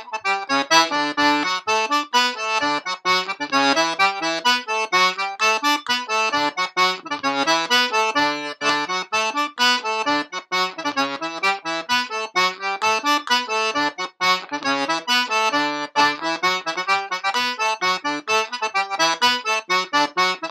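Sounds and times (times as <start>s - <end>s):
Irish sean-nos dance polka music at 130 bpm: 0.0s - 20.5s.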